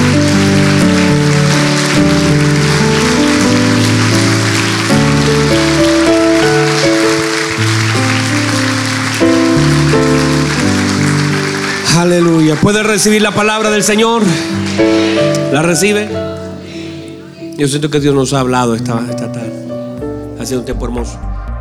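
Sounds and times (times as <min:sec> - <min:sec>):
audience applauding: 0:00.0 - 0:16.5
speech: 0:12.5 - 0:16.4, 0:17.6 - 0:19.6, 0:20.4 - 0:21.3.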